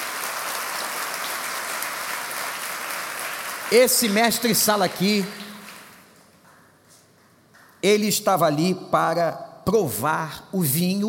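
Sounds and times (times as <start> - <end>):
audience applauding: 0.0 - 6.7
speech: 3.7 - 5.4, 7.8 - 11.0.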